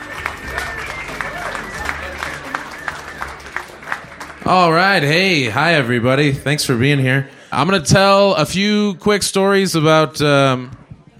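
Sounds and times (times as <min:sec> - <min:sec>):
audience applause: 0:00.0 - 0:06.3
speech: 0:04.5 - 0:10.8.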